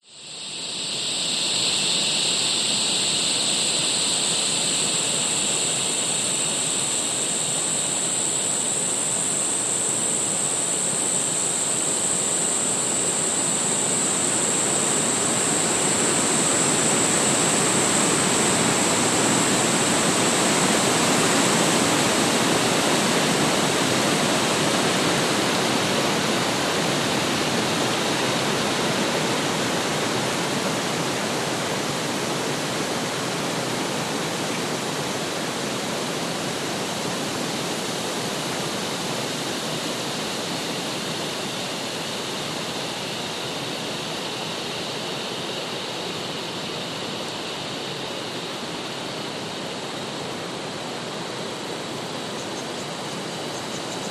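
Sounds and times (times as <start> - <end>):
high-pitched insects: 0.0 - 54.0
strong wind in forest tree tops: 0.3 - 54.0
waves: 3.9 - 54.0.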